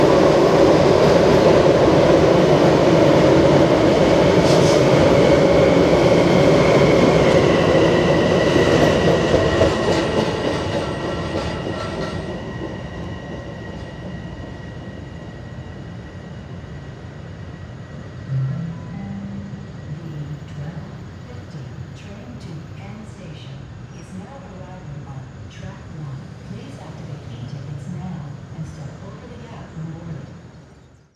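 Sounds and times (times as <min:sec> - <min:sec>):
train arriving: 0:00.0 - 0:30.8.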